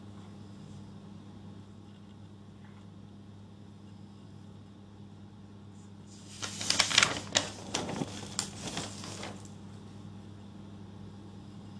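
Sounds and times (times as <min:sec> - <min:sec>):
steady low hum: 0:00.0 - 0:11.7
pages of notes rustling: 0:06.1 - 0:09.6.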